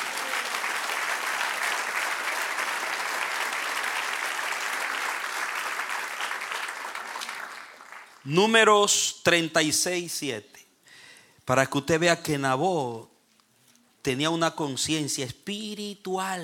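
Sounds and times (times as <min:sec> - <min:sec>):
audience applause: 0:00.0 - 0:08.2
speech: 0:08.2 - 0:10.6, 0:11.5 - 0:13.1, 0:14.0 - 0:16.4.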